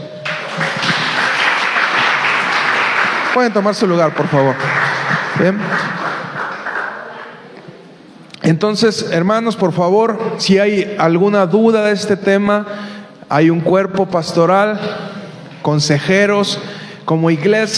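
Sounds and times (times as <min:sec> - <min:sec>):
audience applause: 0:00.2 - 0:07.6
speech: 0:03.4 - 0:04.8, 0:05.4 - 0:06.0, 0:08.5 - 0:17.7.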